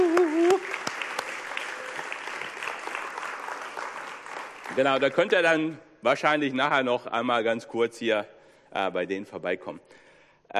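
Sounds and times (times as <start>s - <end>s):
audience clapping: 0.0s - 5.7s
speech: 4.8s - 10.5s.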